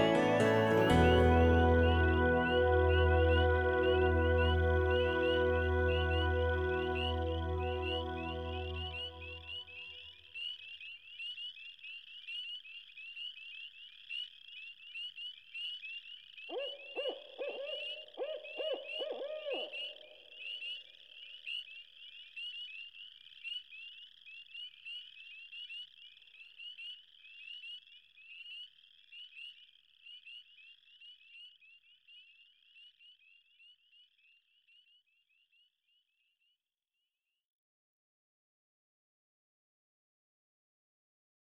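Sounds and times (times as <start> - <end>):
Celtic music: 0.0 - 9.6.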